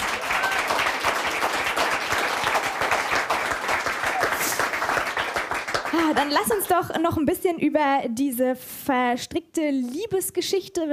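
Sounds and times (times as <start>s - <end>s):
audience applause: 0.0s - 6.6s
speech: 6.2s - 10.9s.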